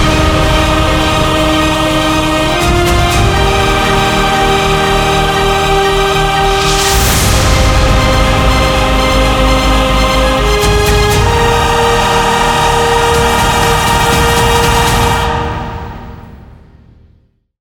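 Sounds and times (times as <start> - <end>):
cinematic trailer motivational epic music: 0.0 - 17.3.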